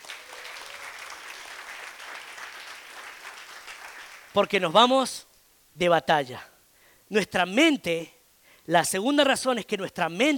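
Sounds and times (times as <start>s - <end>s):
audience applause: 0.0s - 4.3s
speech: 4.4s - 6.5s, 7.1s - 10.3s.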